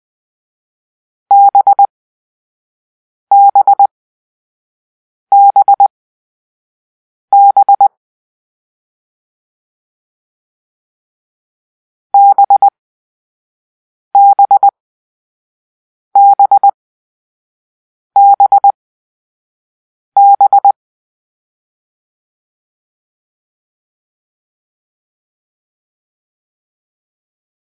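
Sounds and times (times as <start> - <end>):
morse code beeps for letter B: 1.3 - 1.9, 3.3 - 3.9, 5.3 - 5.9, 7.3 - 7.9, 12.2 - 12.7, 14.2 - 14.7, 16.2 - 16.8, 18.2 - 18.8, 20.2 - 20.8.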